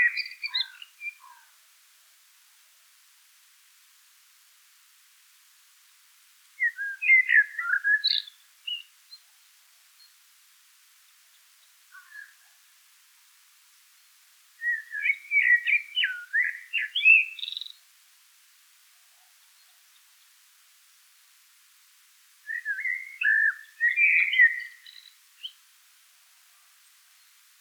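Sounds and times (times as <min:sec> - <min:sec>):
common blackbird warbling song: 0:00.0 - 0:01.5, 0:06.6 - 0:09.2, 0:11.6 - 0:12.6, 0:14.6 - 0:17.8, 0:22.5 - 0:25.6.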